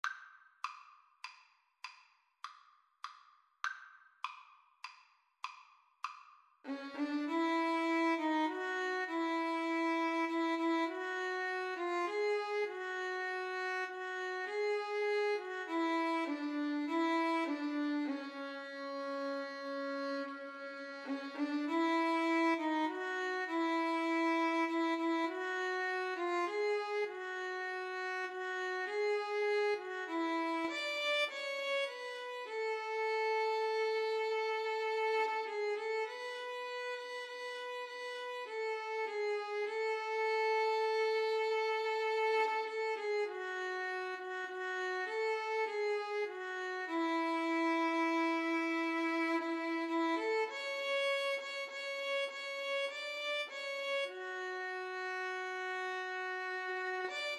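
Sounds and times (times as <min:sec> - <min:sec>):
violin and cello duet: 0:06.7 - 0:57.3.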